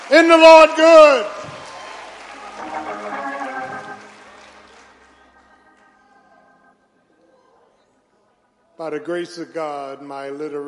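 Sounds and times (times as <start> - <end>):
audience applauding: 0.0 - 6.7
speech: 0.1 - 1.4, 8.8 - 10.6
raised voices and cheering: 0.3 - 6.6.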